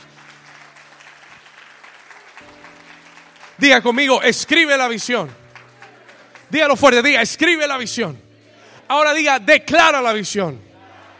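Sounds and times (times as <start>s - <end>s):
audience applause: 0.0s - 6.8s
speech: 3.6s - 5.4s, 6.5s - 8.2s, 8.9s - 10.7s.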